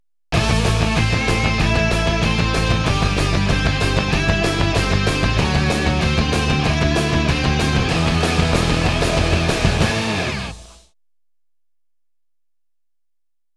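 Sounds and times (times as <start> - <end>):
instrumental theme music: 0.4 - 10.7.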